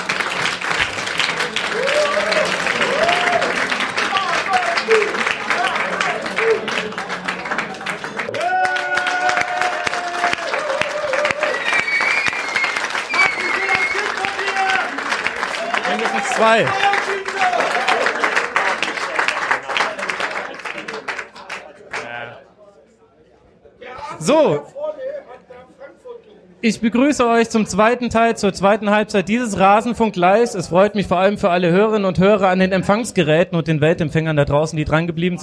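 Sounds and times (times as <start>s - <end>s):
live audience applause: 0.0s - 22.2s
cheers and whoops: 1.6s - 5.7s, 8.3s - 18.3s
speech: 16.4s - 16.9s, 26.6s - 35.4s.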